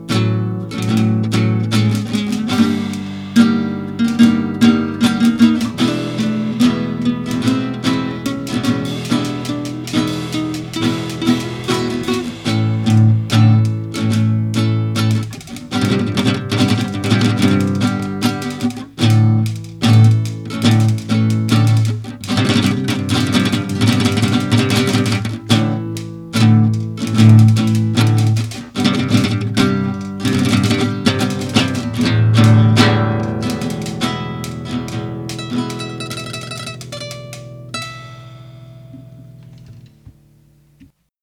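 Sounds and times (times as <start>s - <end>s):
drums: 0.0s - 37.5s
guitar: 0.0s - 41.0s.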